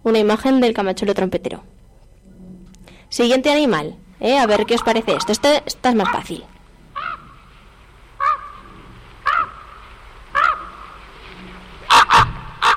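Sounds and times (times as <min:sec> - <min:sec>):
speech: 0:00.0 - 0:01.8, 0:03.1 - 0:06.5
raven calling: 0:04.2 - 0:12.7.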